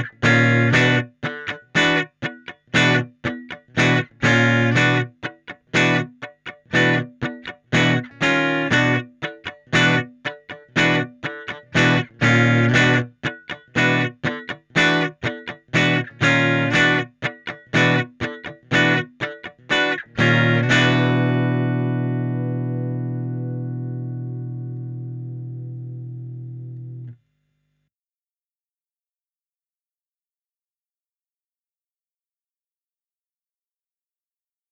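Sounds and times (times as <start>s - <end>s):
Fender clean electric guitar amp in a room: 0.0s - 27.2s.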